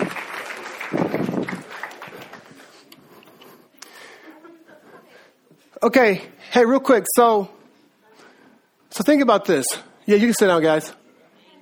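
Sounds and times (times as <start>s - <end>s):
audience applause: 0.0s - 2.8s
speech: 5.8s - 7.6s, 9.0s - 11.0s.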